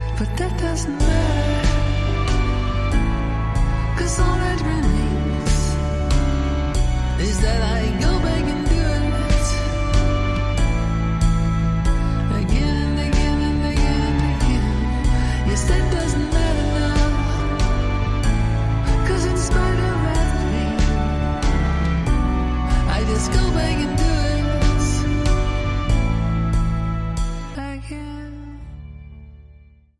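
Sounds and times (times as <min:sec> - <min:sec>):
orchestral music: 0:00.0 - 0:29.3.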